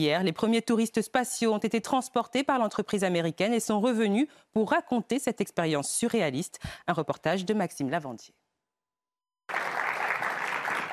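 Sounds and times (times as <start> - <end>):
speech: 0.0 - 8.4
crowd applauding arriving space tourists: 9.5 - 10.9.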